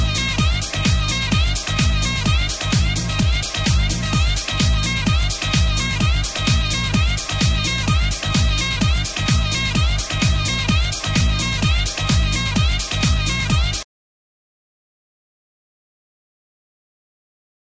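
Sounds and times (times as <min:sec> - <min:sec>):
uplifting saxophone music: 0:00.0 - 0:13.9.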